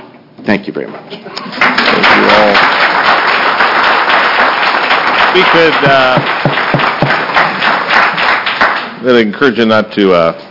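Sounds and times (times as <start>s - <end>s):
speech: 0.5s - 3.0s, 5.3s - 6.5s, 9.0s - 10.4s
people applauding at a committee hearing: 1.4s - 9.3s.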